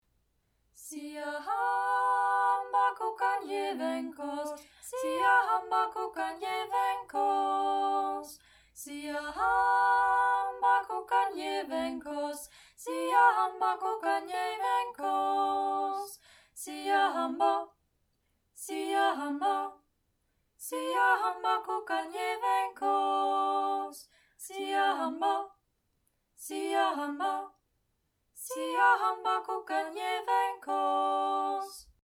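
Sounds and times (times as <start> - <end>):
two-part choral singing: 0.8 - 17.8, 18.6 - 19.8, 20.6 - 25.6, 26.4 - 27.6, 28.4 - 32.0.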